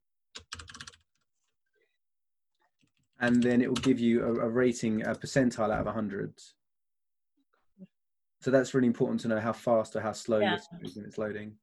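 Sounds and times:
typing a web domain on a computer keyboard: 0.4s - 1.2s, 2.8s - 5.3s
speech: 3.2s - 6.6s, 8.4s - 11.6s.

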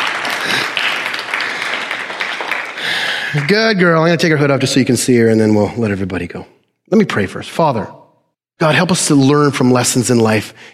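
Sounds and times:
crowd applause: 0.0s - 3.8s
speech: 3.3s - 8.0s, 8.6s - 10.7s.

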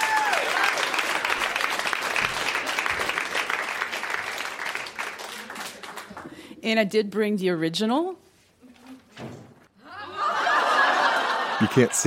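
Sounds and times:
audience clapping to welcome a speaker at a storytelling event in Kitchener: 0.0s - 6.5s
speech: 6.6s - 8.2s, 11.6s - 12.0s
laughter: 9.8s - 12.0s.

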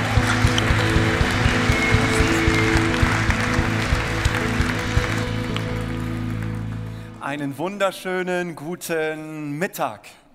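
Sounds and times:
audience applause: 0.0s - 7.2s
speech: 7.3s - 10.2s.

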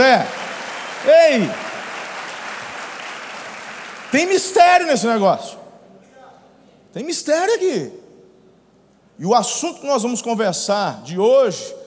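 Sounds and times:
speech: 0.0s - 0.4s, 1.0s - 1.6s, 4.1s - 5.6s, 6.9s - 8.0s, 9.2s - 11.8s
audience applause: 0.0s - 4.5s.

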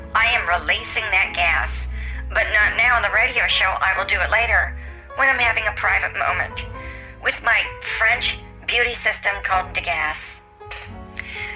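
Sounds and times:
speech: 0.5s - 10.3s
chair creaking: 10.6s - 11.2s.

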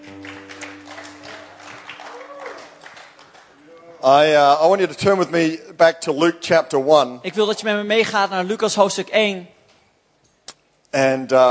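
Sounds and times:
audience applause for the band: 0.0s - 3.8s
speech: 4.0s - 9.6s, 10.9s - 11.4s.

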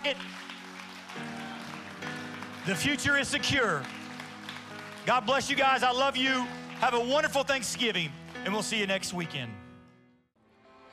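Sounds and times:
speech: 0.0s - 0.5s, 2.6s - 4.0s, 5.0s - 9.6s
audience applause: 0.0s - 9.0s.

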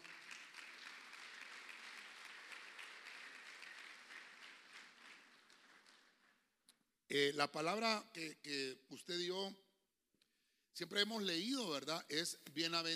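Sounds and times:
church congregation clapping hands: 0.0s - 6.7s
speech: 7.1s - 9.6s, 10.8s - 12.9s.

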